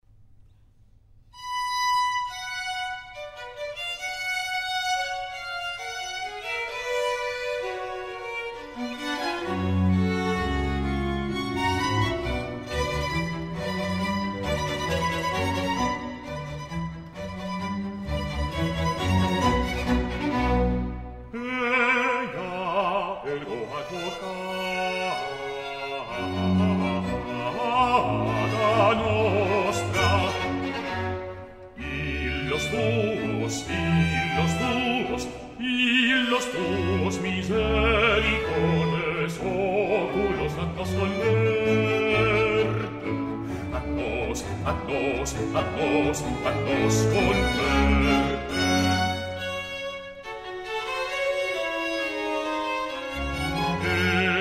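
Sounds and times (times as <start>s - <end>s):
sacred song in G minor, moderato: 0.0s - 54.3s.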